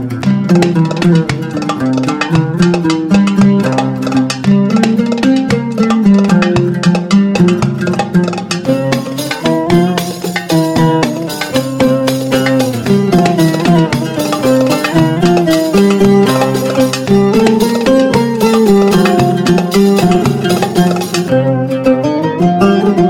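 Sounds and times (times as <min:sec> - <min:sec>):
oriental dance music: 0:00.1 - 0:22.9.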